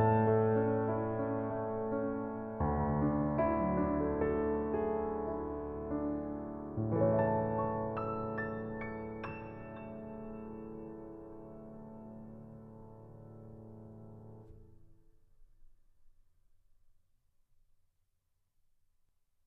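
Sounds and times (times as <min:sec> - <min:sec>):
live piano playing: 0:00.0 - 0:14.8.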